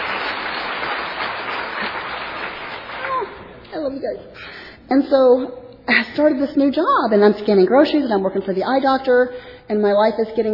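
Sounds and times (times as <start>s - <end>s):
audience applause: 0.0s - 3.4s
speech: 3.9s - 10.5s.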